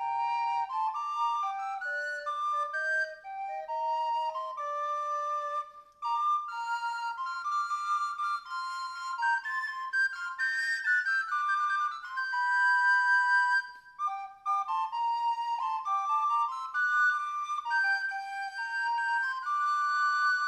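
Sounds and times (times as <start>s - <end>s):
soprano recorders: 0.0s - 20.4s.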